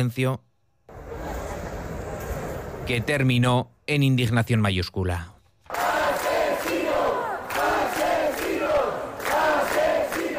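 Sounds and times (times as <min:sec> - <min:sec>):
speech: 0:00.0 - 0:00.5, 0:02.9 - 0:05.3
crowd shouting protest chants: 0:05.7 - 0:10.3.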